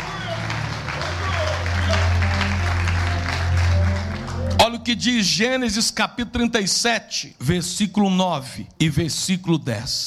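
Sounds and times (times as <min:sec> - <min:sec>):
audience applauding: 0:00.0 - 0:05.3
speech: 0:04.8 - 0:10.0.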